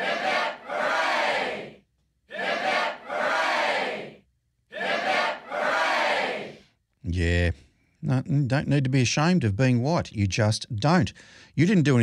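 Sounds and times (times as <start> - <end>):
crowd giving three cheers: 0.0 - 1.7, 2.3 - 6.6
speech: 7.2 - 12.0.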